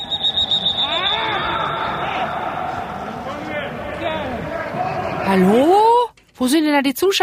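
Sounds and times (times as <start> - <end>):
thin high tone: 0.0 - 3.1
steady murmur: 0.0 - 5.3
football players shouting in an empty stadium: 0.0 - 5.8
speech: 5.3 - 5.8, 6.4 - 7.2.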